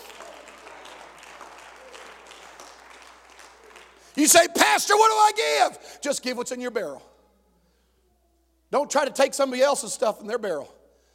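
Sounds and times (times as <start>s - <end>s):
audience clapping hands: 0.0s - 4.6s
speech: 4.2s - 7.1s, 8.7s - 10.8s.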